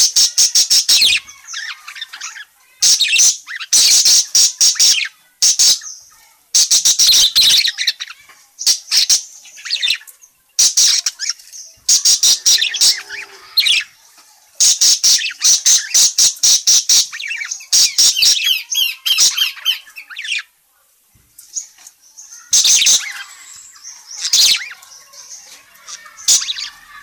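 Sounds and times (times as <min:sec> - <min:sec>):
parakeet chattering: 0:00.0 - 0:14.0, 0:14.6 - 0:20.5, 0:22.3 - 0:27.0.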